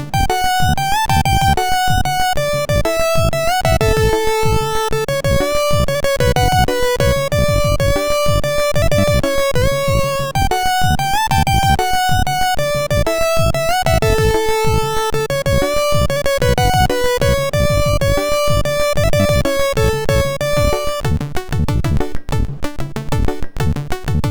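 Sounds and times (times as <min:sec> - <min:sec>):
MOS6581R4 sound chip dance music: 0:00.1 - 0:24.2.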